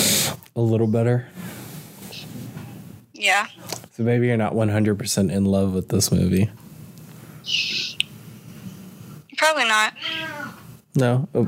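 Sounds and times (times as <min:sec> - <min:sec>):
speech: 0:00.6 - 0:01.4, 0:03.2 - 0:06.7, 0:07.4 - 0:07.8, 0:09.4 - 0:10.2, 0:11.0 - 0:11.4
cat meowing: 0:09.9 - 0:10.6.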